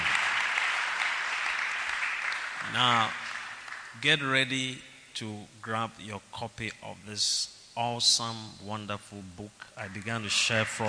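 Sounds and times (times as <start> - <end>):
audience clapping: 0.0 - 4.0, 9.8 - 10.8
speech: 2.6 - 3.2, 3.9 - 10.8.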